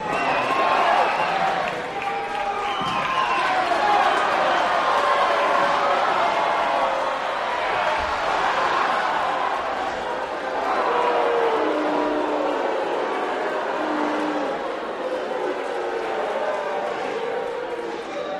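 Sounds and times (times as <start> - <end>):
crowd reacting to a boxing fight: 0.0 - 18.3.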